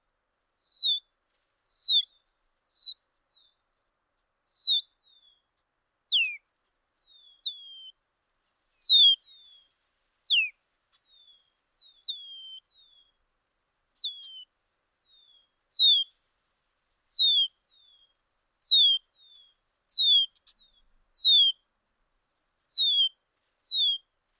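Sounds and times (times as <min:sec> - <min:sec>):
bird song of high descending whistled phrases: 0:00.6 - 0:01.0, 0:01.7 - 0:05.4, 0:06.1 - 0:06.4, 0:07.0 - 0:08.0, 0:08.8 - 0:09.6, 0:10.3 - 0:10.5, 0:11.1 - 0:13.1, 0:14.0 - 0:14.5, 0:15.1 - 0:21.6, 0:22.7 - 0:24.3.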